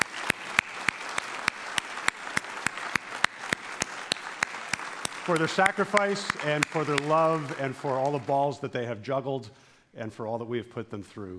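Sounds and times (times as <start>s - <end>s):
audience applause: 0.0s - 8.4s
speech: 5.3s - 11.3s.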